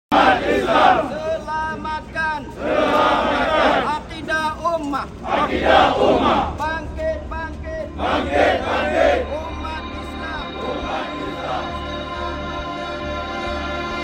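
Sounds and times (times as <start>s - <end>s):
crowd chanting slogans to defend the faith: 0.1s - 1.8s, 2.4s - 4.3s, 5.0s - 13.9s
low rumble: 5.0s - 12.7s.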